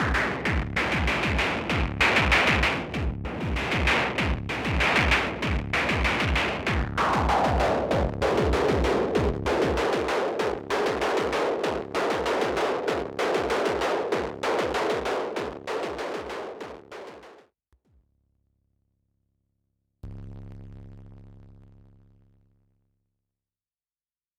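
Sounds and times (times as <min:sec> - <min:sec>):
Moog DFAM analog drum synthesizer: 0:00.0 - 0:17.4.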